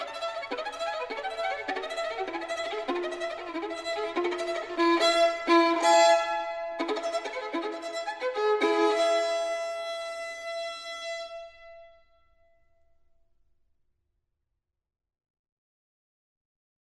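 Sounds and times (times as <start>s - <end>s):
solo violin caprice in E major, Andante: 0.0s - 12.0s.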